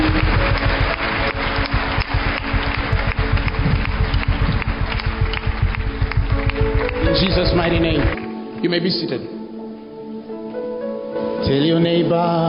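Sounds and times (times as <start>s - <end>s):
audience clapping: 0.0s - 8.3s
speech: 8.6s - 9.4s, 11.5s - 12.4s.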